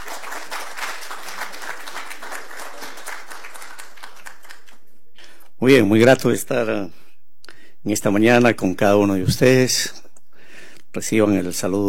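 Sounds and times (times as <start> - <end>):
audience applause welcoming speaker: 0.0 - 4.8
speech: 5.6 - 7.0, 7.8 - 10.0, 10.9 - 11.8.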